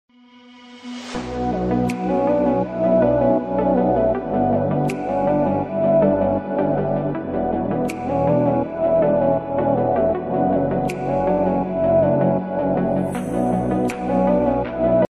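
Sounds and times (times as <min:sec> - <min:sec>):
ringtone background music remix: 0:01.2 - 0:15.0.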